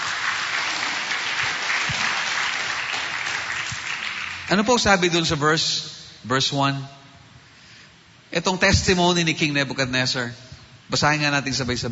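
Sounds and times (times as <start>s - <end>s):
church congregation applauding the Lord: 0.0s - 5.1s
speech: 4.5s - 7.0s, 8.3s - 11.9s.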